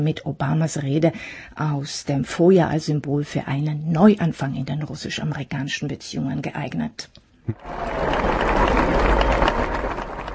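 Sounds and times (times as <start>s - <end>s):
speech: 0.0s - 9.1s
crowd applauding: 7.5s - 10.3s.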